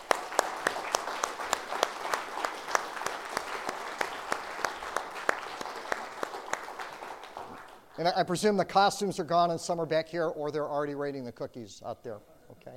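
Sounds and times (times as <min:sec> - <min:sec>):
audience applause: 0:00.0 - 0:08.0
speech: 0:08.0 - 0:12.7.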